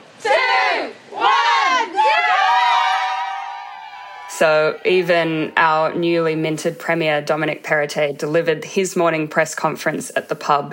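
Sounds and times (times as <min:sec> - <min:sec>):
pub crowd cheering: 0:00.0 - 0:05.6
speech: 0:04.4 - 0:10.7.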